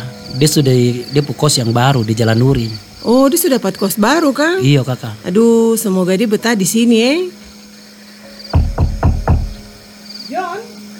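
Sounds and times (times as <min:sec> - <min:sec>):
speech: 0:00.4 - 0:07.5
knocking on a door: 0:08.5 - 0:09.8.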